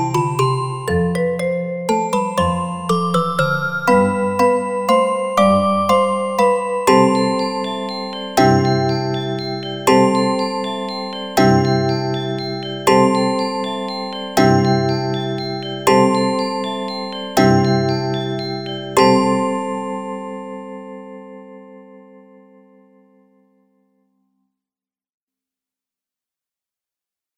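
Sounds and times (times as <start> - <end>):
marimba: 0.0 - 19.8.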